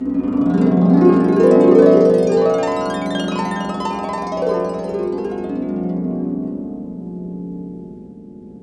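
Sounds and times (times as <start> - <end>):
harp glissando: 0.2 - 6.5.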